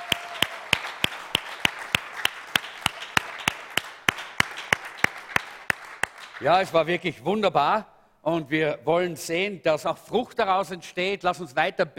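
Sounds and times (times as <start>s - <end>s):
audience applause: 0.0s - 6.6s
speech: 6.4s - 11.9s.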